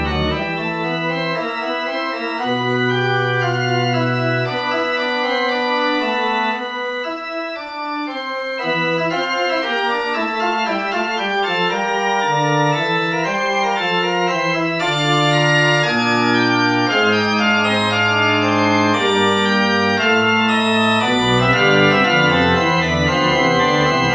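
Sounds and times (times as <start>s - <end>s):
Locrian fugue in 31 edo tuning: 0.0s - 24.1s.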